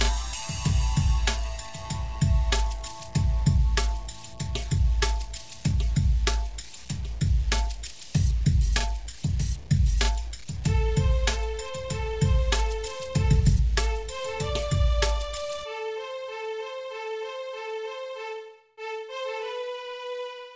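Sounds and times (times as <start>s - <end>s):
hip hop music: 0.0s - 16.0s.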